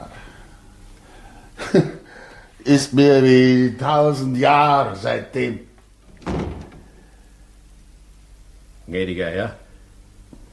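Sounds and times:
speech: 1.7 - 2.0, 2.6 - 5.7, 8.9 - 9.6
door thudding shut as someone leaves a room in a German radio drama: 6.1 - 7.0.

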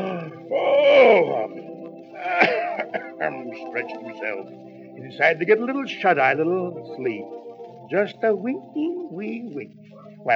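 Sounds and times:
hare yawning: 0.0 - 1.5, 2.2 - 3.2
laughter: 0.0 - 4.4
speech: 3.2 - 10.3.

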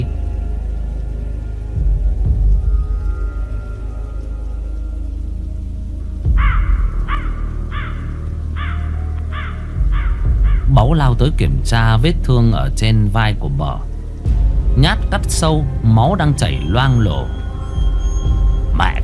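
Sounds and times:
low rumbling: 0.0 - 19.0
steady rain: 0.0 - 19.0
crow cawing: 6.3 - 10.7
speech: 10.9 - 13.9, 14.8 - 17.4.

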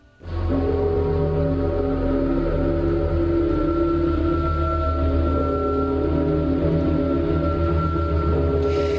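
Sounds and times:
TV theme tune: 0.1 - 8.9.

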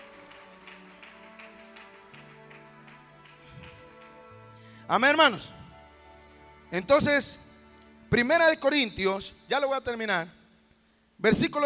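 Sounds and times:
audience applause: 0.0 - 4.7
speech: 4.9 - 5.6, 6.7 - 7.4, 8.1 - 10.4, 11.2 - 11.6.

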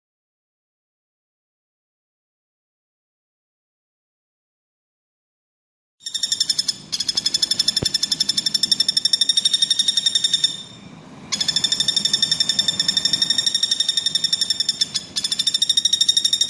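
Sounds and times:
bird singing a fast high-pitched chattering song: 6.0 - 16.4.

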